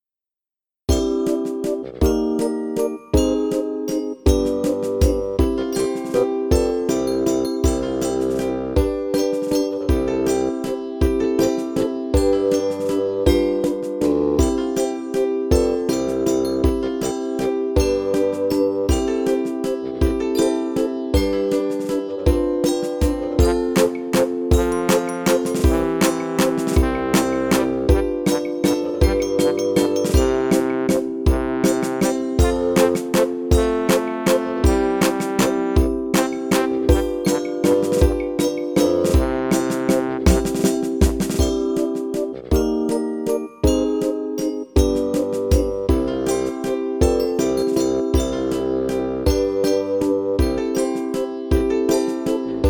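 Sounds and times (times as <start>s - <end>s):
instrumental music mix: 0.8s - 52.6s.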